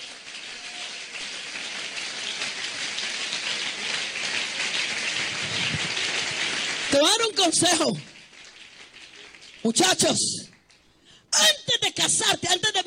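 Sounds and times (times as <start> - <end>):
audience applause: 0.0 - 9.8
speech: 7.0 - 8.1, 9.6 - 10.5, 11.4 - 12.8.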